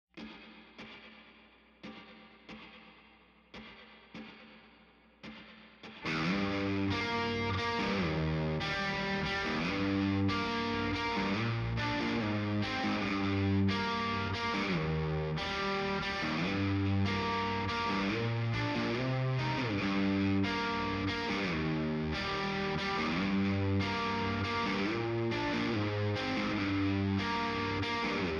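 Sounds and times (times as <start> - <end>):
guitars: 0.2 - 28.3.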